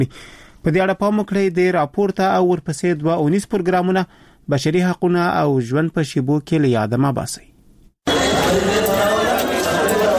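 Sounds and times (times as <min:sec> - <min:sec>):
speech: 0:00.0 - 0:07.5
babble of patients and companions in Asadabad central hospital waiting area: 0:08.0 - 0:10.1.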